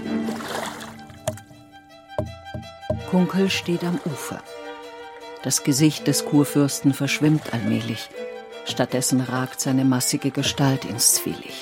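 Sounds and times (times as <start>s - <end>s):
wooden oars of an Elector's barge dipping into the Havel river: 0.2s - 4.4s, 6.9s - 8.0s
wooden barge oars knocking: 0.8s - 4.4s
speech: 3.1s - 4.6s, 5.4s - 11.6s.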